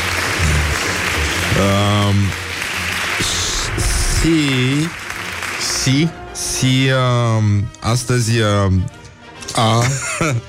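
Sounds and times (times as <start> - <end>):
applause: 0.0 - 6.9
speech: 1.6 - 2.5, 4.2 - 5.0, 5.9 - 9.0, 9.6 - 10.4
laughter: 9.8 - 10.4.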